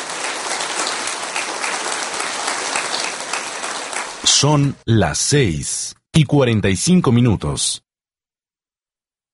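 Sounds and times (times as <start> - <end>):
audience applause: 0.0 - 4.7
speech: 4.4 - 7.8.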